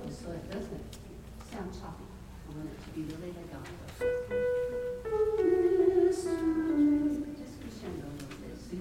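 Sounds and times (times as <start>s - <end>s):
alto singing a Magnificat: 4.0s - 8.0s.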